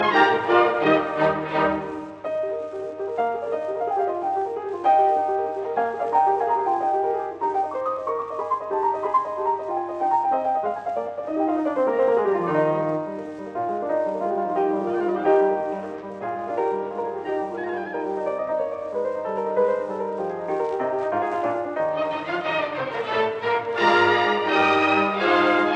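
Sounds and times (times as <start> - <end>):
concerto for two pianos in E flat major rondo allegro: 0.0 - 25.7.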